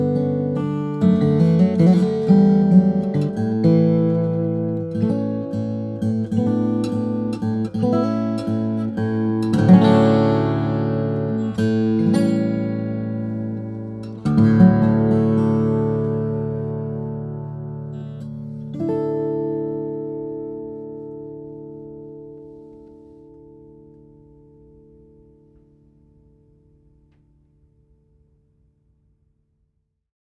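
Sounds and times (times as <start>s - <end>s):
steel-string flattop guitar of Madagascar rosewood and Engelmann spruce: 0.0s - 27.2s.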